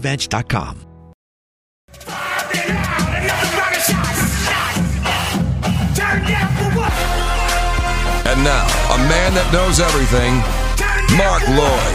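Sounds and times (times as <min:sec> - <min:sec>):
speech: 0:00.0 - 0:00.9, 0:08.2 - 0:11.9
loud music: 0:01.9 - 0:11.9
Florida State football fans chanting and yelling: 0:02.0 - 0:11.9.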